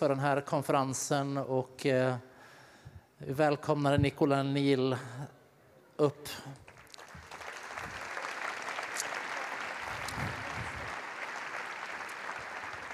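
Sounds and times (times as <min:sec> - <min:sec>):
speech: 0:00.0 - 0:02.3, 0:03.2 - 0:05.4, 0:06.0 - 0:06.6
audience applause: 0:06.6 - 0:12.9.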